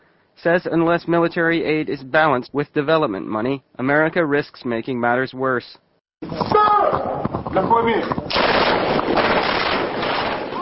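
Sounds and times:
speech: 0:00.4 - 0:06.6, 0:07.6 - 0:08.2
practice rifle fire from Nigerian soldiers shooting at cardboard cutouts in the desert: 0:08.3 - 0:10.6.

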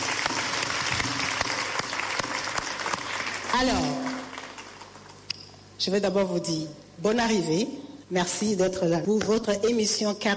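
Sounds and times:
audience applause: 0:00.0 - 0:05.2
speech: 0:03.6 - 0:04.0, 0:05.8 - 0:10.3.

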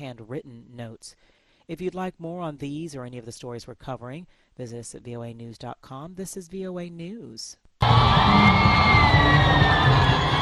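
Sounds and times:
speech: 0:00.0 - 0:10.3
crowd cheering at Kinshasa's Ndolo Airport: 0:07.8 - 0:10.4.

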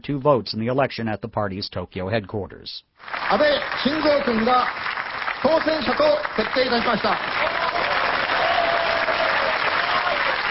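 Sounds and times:
speech: 0:00.0 - 0:07.7
LDP lawmakers applauding in an auditorium at the party's Tokyo headquarters: 0:03.0 - 0:10.4.

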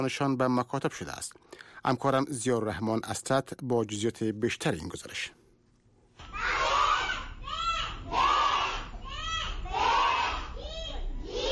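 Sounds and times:
speech: 0:00.0 - 0:05.4
children reciting lessons in unison in a temple: 0:06.3 - 0:11.5.

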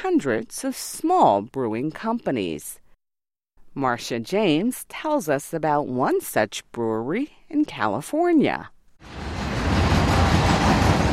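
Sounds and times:
speech: 0:00.0 - 0:02.8, 0:03.8 - 0:09.2
passenger train rolling past Golden Road Brewery in Los Angeles: 0:09.1 - 0:11.1.

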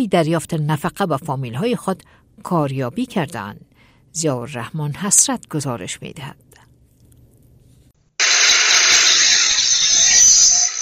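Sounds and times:
speech: 0:00.0 - 0:06.5
prison workshop noise with power tools: 0:08.2 - 0:10.8.

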